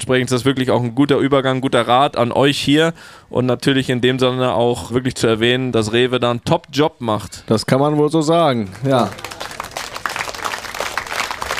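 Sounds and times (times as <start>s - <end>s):
speech: 0.1s - 9.4s
group applause: 8.7s - 11.5s.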